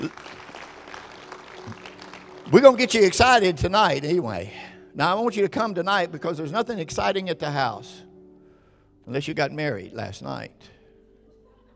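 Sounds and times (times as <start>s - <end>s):
speech: 0.0s - 0.4s, 2.5s - 8.1s, 9.1s - 10.8s
audience clapping: 0.0s - 4.0s.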